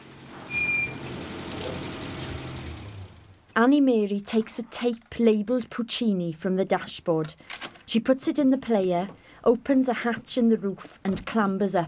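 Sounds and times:
van engine rumbling as it drives through a village and pulls up: 0:00.0 - 0:03.5
speech: 0:03.6 - 0:11.8.

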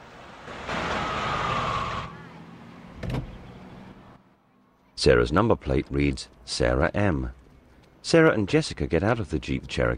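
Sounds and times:
truck passing by: 0:00.0 - 0:04.5
speech: 0:05.0 - 0:07.4, 0:08.0 - 0:09.9.

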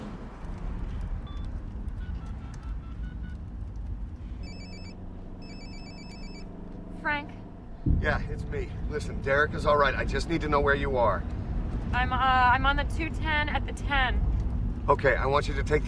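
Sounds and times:
car engine and road rumble in the streets of Los Angeles: 0:00.0 - 0:15.8
mobile phone keypad beeps: 0:01.2 - 0:03.4, 0:04.4 - 0:06.5
mobile phone ringing: 0:04.4 - 0:06.5
speech: 0:07.0 - 0:07.4, 0:08.0 - 0:14.3, 0:14.9 - 0:15.8.

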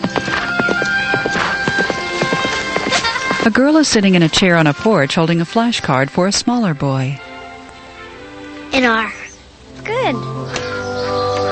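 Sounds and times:
horse hooves clip-clopping as rider passes: 0:00.0 - 0:05.5
speech: 0:03.4 - 0:07.3, 0:08.7 - 0:09.2, 0:09.8 - 0:10.4.

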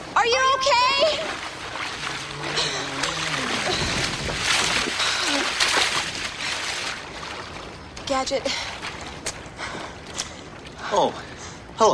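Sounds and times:
splash of falling into a fountain: 0:01.1 - 0:07.4
speech: 0:08.1 - 0:08.7, 0:10.9 - 0:11.9.

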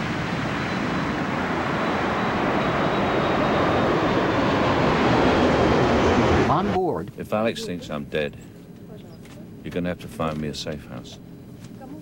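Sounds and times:
airplane taking off from Beijing airport: 0:00.0 - 0:06.8
speech: 0:07.2 - 0:08.5, 0:09.6 - 0:11.3.

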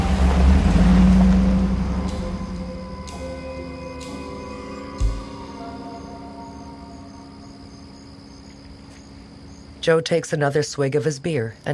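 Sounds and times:
car engine pulling away: 0:00.0 - 0:05.5
speech: 0:09.8 - 0:11.7.

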